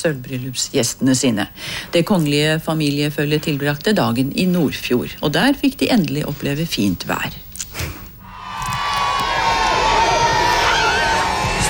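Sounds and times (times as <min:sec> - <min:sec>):
speech: 0:00.0 - 0:08.0
crowd cheering and shouting: 0:08.4 - 0:11.6
children's high voices whooping: 0:08.5 - 0:11.6.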